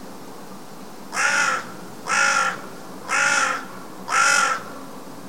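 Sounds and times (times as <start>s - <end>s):
carrion crow Corvus corone cawing: 1.1s - 4.9s.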